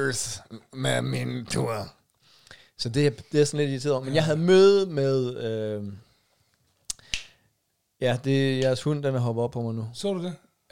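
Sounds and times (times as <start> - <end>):
speech: 0.0 - 2.0, 2.8 - 6.1, 8.0 - 10.7
finger snaps: 6.9 - 7.4.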